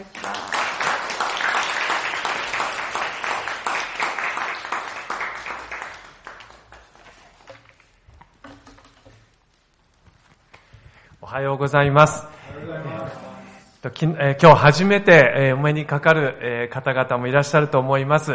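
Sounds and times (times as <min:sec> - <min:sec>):
speech: 0:00.0 - 0:00.5, 0:11.3 - 0:12.3, 0:13.8 - 0:18.3
audience applause: 0:00.0 - 0:07.4.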